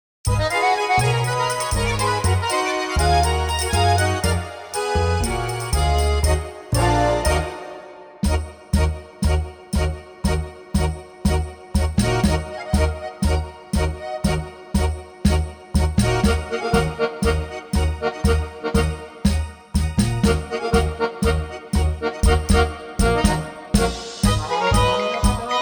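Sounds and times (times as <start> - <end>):
tango music: 0.3 - 25.6.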